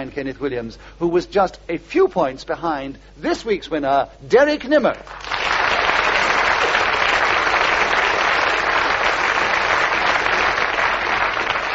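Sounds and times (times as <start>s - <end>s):
speech: 0.0s - 5.3s
studio audience applause: 5.0s - 11.7s.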